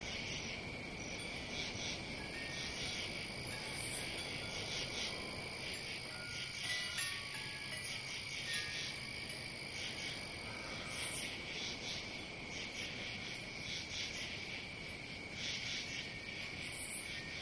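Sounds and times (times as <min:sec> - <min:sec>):
dense chorus of crickets trilling and chirping: 0:00.0 - 0:17.4.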